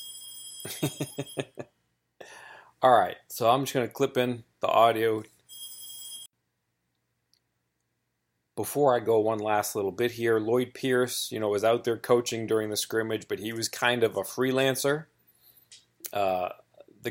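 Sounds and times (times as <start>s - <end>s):
mobile phone ringing: 0.0s - 1.6s, 5.5s - 6.3s
speech: 0.7s - 1.7s, 2.8s - 5.3s, 8.6s - 15.1s, 15.7s - 17.0s.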